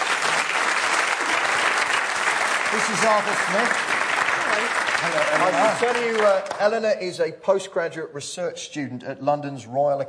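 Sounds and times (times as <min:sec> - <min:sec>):
audience applause welcoming a pianist on stage: 0:00.0 - 0:06.8
speech: 0:02.7 - 0:10.0.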